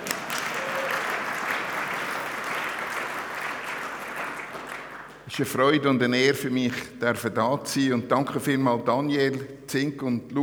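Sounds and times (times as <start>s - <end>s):
crowd applauding: 0.0s - 5.3s
speech: 5.3s - 10.4s.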